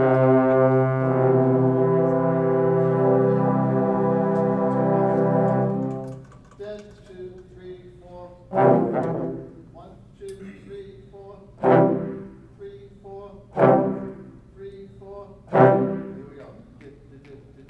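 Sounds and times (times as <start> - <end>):
brass chord progression: 0.0 - 6.3, 8.5 - 9.9, 11.5 - 12.6, 13.5 - 14.5, 15.4 - 16.5.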